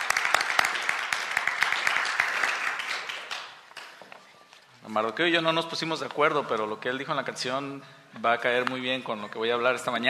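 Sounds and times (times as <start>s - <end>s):
audience applause: 0.0s - 4.0s
speech: 4.9s - 10.0s.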